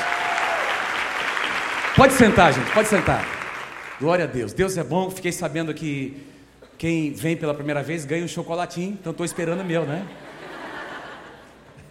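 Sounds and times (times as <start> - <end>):
audience applause: 0.0 - 4.1
speech: 2.0 - 3.4, 4.0 - 10.2
laughter: 9.2 - 11.8.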